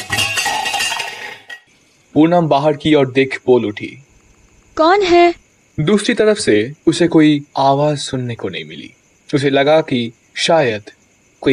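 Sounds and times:
metal utensils falling and clattering: 0.0 - 1.7
speech: 2.2 - 4.1, 4.8 - 11.5.

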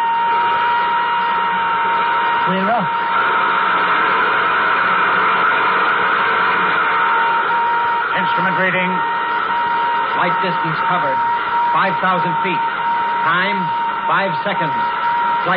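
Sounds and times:
constant high whine: 0.0 - 15.5
nuclear jet engines starting up: 0.0 - 15.5
speech: 10.3 - 15.5.

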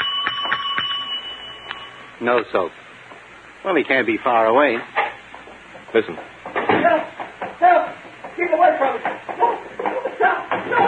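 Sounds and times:
bell being rung: 0.0 - 2.4
speech: 2.2 - 2.8, 3.6 - 5.0, 5.9 - 10.8.

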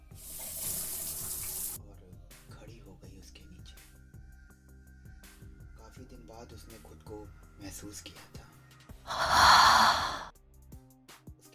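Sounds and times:
shower water spraying: 0.0 - 1.8
speech: 6.4 - 8.4, 9.1 - 9.9.

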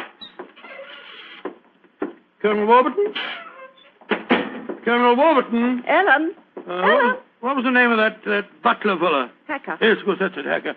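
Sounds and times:
unlocked door creaking open: 0.0 - 1.6, 2.5 - 4.5
speech: 2.4 - 3.4, 4.8 - 10.7.

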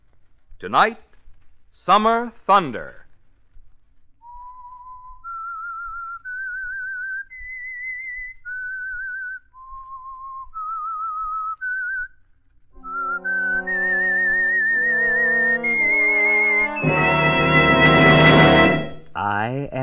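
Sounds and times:
speech: 0.6 - 1.1, 1.7 - 3.0
whistled melody: 4.2 - 12.2, 12.8 - 19.1
orchestra playing: 12.8 - 19.1.

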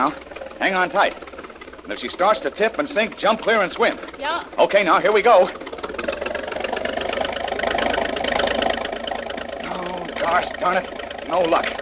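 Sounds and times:
speech: 0.0 - 5.7, 10.3 - 11.8
motorboat engine revving at full throttle: 0.0 - 11.8.

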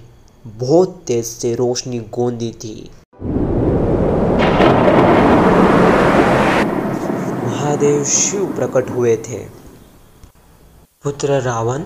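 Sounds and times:
speech: 0.4 - 3.0, 7.8 - 9.6, 11.0 - 11.8
thunder crash sound effect: 3.2 - 10.1.

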